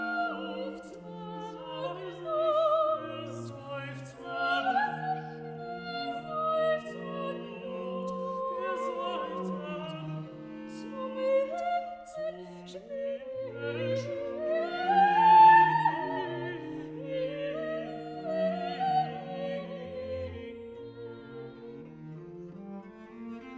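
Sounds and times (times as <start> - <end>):
soprano singing cantata recitative: 0.0 - 22.5.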